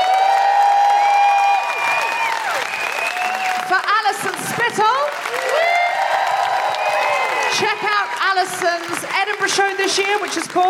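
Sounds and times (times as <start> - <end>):
audience applause: 0.0 - 10.6
speech: 8.4 - 10.6.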